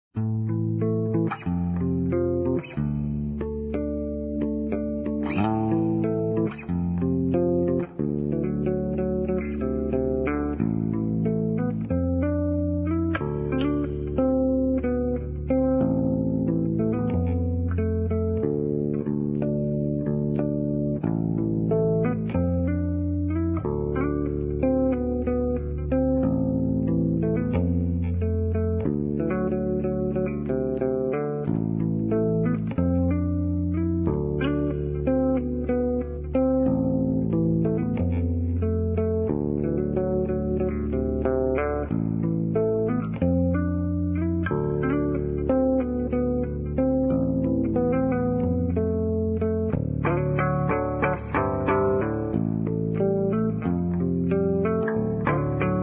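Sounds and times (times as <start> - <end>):
electric bass guitar: 0.0 - 55.8.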